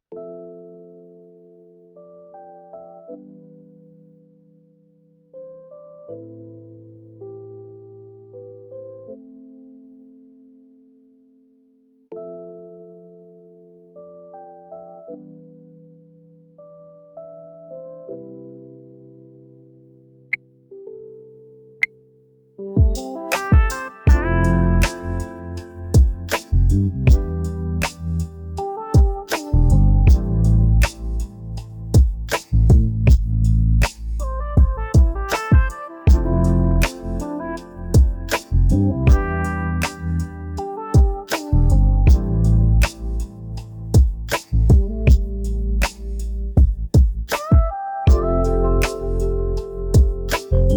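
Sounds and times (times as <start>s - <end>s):
lofi focus music: 22.6s - 50.7s.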